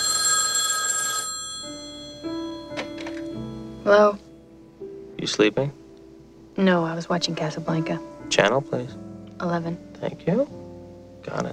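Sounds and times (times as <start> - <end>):
telephone ringing with a trilling bell: 0.0 - 3.4
speech: 3.9 - 4.3, 5.2 - 5.8, 6.6 - 10.6, 11.2 - 11.5.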